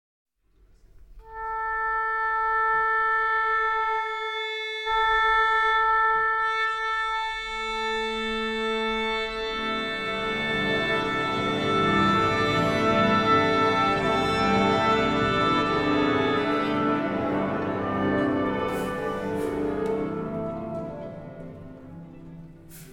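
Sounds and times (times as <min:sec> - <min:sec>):
orchestra tuning: 0:01.2 - 0:22.9.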